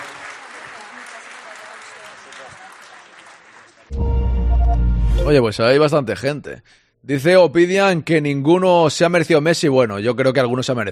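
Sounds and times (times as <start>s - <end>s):
large hall audience applause: 0.0s - 4.0s
speech: 4.8s - 10.9s.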